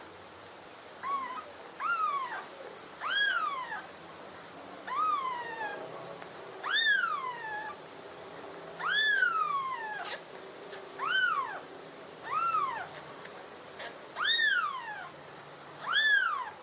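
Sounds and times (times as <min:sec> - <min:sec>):
myna calling: 0:01.0 - 0:04.0, 0:04.8 - 0:06.0, 0:06.6 - 0:07.9, 0:08.8 - 0:15.2, 0:15.8 - 0:16.6.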